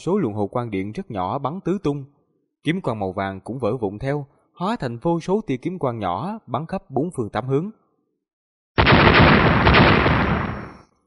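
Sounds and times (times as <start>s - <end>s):
speech: 0.0s - 7.8s
rapid series of explosions blasting earth and rock apart: 8.8s - 10.9s.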